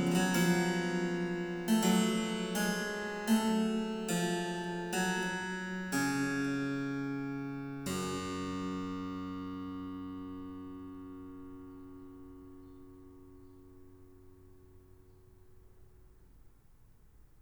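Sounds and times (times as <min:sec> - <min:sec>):
harpsichord: 0:00.0 - 0:10.3.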